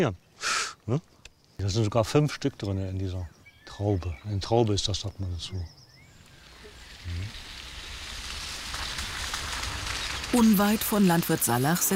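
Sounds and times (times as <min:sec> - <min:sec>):
speech: 0:00.0 - 0:05.8, 0:10.3 - 0:11.9
rain falling: 0:06.3 - 0:11.9.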